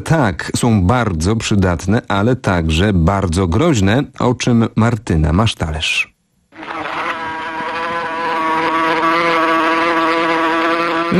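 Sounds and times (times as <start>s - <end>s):
speech: 0.0s - 6.1s
mosquito buzzing: 6.5s - 11.1s.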